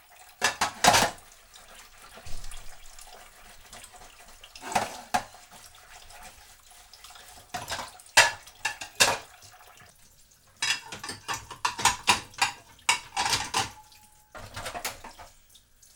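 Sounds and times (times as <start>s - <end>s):
plates clattering while doing the dishes: 0.4s - 1.2s, 4.6s - 5.4s, 7.5s - 9.4s, 10.6s - 15.4s.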